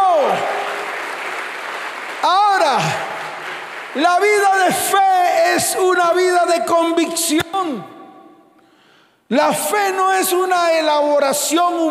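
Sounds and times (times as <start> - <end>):
audience applause: 0.0 - 4.8
speech: 4.0 - 8.0, 9.3 - 11.9.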